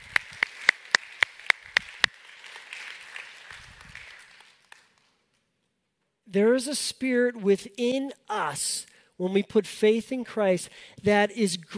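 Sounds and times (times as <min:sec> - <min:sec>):
audience applause: 0:00.0 - 0:05.1
speech: 0:06.3 - 0:11.7.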